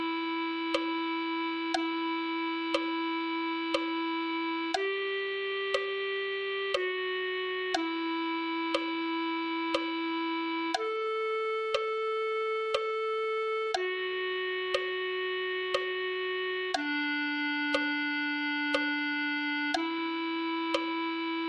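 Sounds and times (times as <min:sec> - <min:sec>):
clarinet: 0:00.0 - 0:21.4.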